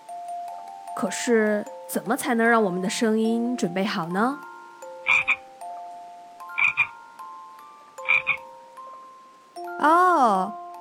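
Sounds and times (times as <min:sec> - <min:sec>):
speech: 0:01.0 - 0:04.5, 0:09.8 - 0:10.6
frog croaking: 0:05.0 - 0:05.5, 0:06.5 - 0:07.1, 0:08.0 - 0:08.6.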